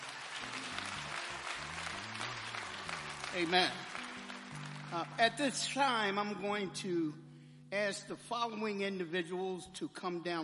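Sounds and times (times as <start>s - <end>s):
audience hand clapping: 0.0s - 6.1s
speech: 3.4s - 3.9s, 4.9s - 10.4s.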